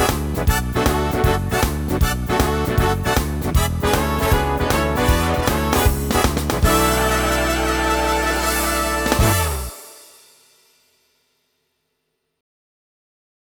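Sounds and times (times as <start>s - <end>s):
swing and jazz big band shuffle style on Yamaha Tyros3 keyboard: 0.0s - 10.1s.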